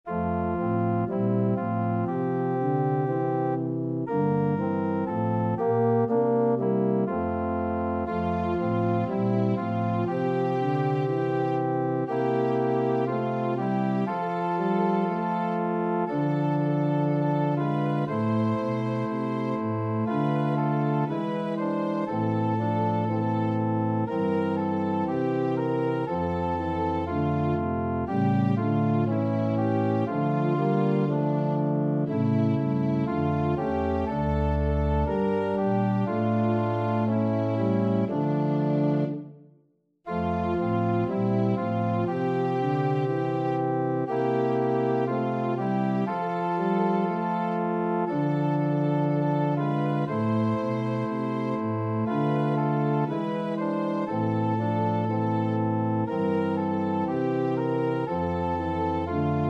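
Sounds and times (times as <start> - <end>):
organ playing hymn: 0.1 - 39.3, 40.1 - 59.4.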